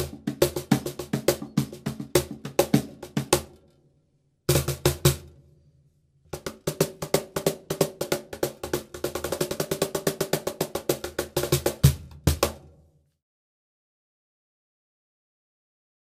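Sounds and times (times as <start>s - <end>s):
cajon playing club salsa: 0.0s - 3.5s, 4.5s - 5.2s, 6.4s - 12.6s.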